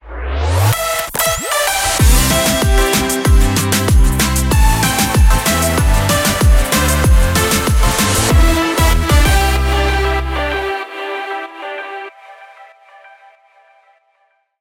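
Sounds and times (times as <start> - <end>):
jingle: 1.1 - 10.8.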